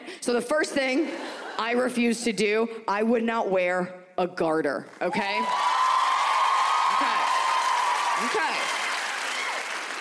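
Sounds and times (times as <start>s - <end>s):
speech: 0.2s - 5.6s
audience applauding at a stand-up comedy show: 4.9s - 9.9s
shouted whoops from a stand-up comedy audience: 5.3s - 9.9s.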